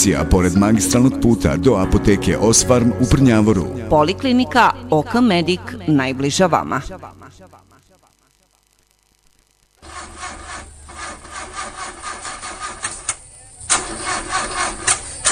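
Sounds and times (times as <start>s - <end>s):
speech: 0.0s - 7.7s
old car engine cranking and struggling to start: 9.8s - 15.3s.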